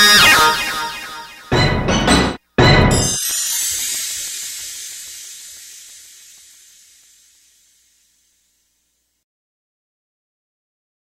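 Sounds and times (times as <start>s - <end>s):
musical stingers: 0.1s - 7.4s.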